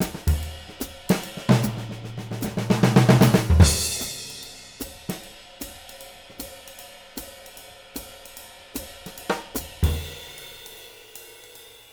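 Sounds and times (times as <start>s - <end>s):
live swing drums: 0.0s - 11.9s.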